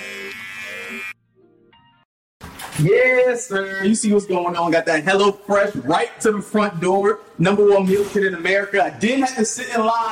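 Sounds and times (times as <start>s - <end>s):
electric body trimmer buzzing: 0.0s - 1.2s
speech: 2.8s - 10.1s.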